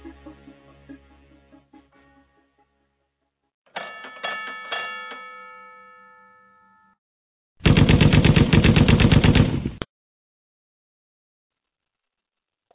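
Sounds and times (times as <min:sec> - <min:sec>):
ringing bell-like chimes: 0:03.7 - 0:07.0
AK assault rifle gunfire: 0:07.6 - 0:09.8.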